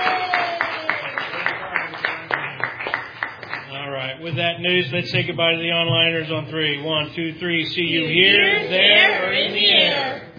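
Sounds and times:
round of applause: 0.0s - 3.8s
speech: 4.2s - 10.2s.

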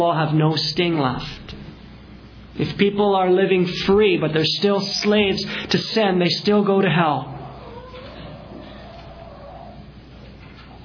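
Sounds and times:
speech: 0.0s - 1.6s, 2.6s - 7.3s
pigeon cooing: 7.2s - 10.8s.

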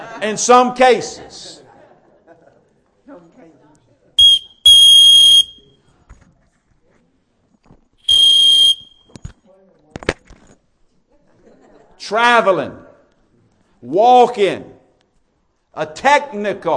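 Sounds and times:
laughter: 0.0s - 3.0s, 11.1s - 12.0s
speech: 0.2s - 1.6s, 12.1s - 12.8s, 13.8s - 14.8s, 15.8s - 16.7s
referee's whistle blowing: 4.2s - 5.8s, 8.0s - 9.2s.

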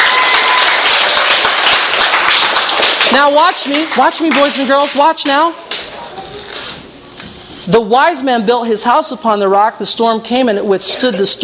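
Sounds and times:
audience applause: 0.0s - 5.0s
speech: 3.2s - 5.8s, 7.7s - 11.4s.

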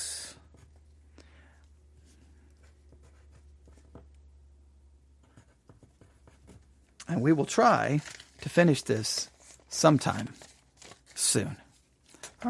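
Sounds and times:
pen scratching on paper noting down a time: 2.0s - 4.1s, 5.2s - 6.9s
speech: 7.1s - 10.5s, 11.3s - 11.6s.

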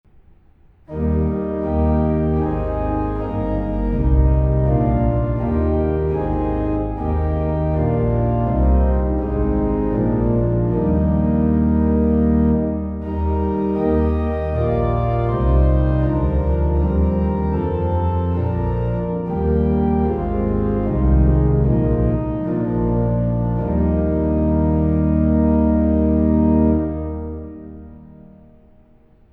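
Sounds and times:
organ: 0.9s - 28.2s.

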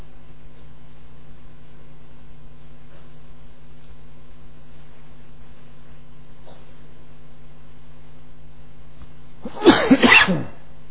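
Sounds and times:
harsh throaty coughs: 9.5s - 10.6s.

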